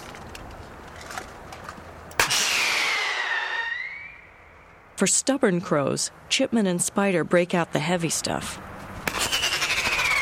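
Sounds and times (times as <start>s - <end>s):
screaming pyrotechnic rockets fired from cap gun: 2.2s - 4.4s, 9.1s - 10.2s
speech: 5.0s - 8.7s.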